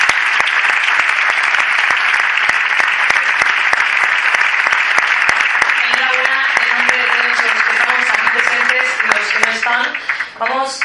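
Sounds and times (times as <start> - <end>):
audience applause: 0.0 - 10.8.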